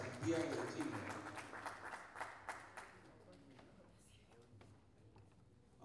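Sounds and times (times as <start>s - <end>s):
audience applause: 0.0s - 3.0s
speech: 0.2s - 1.4s.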